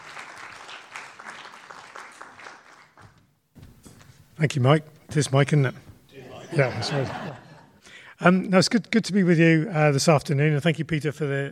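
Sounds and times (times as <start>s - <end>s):
audience round of applause: 0.0s - 3.2s
speech: 4.4s - 5.9s, 6.6s - 7.4s, 8.2s - 11.5s
laughter: 6.2s - 7.8s.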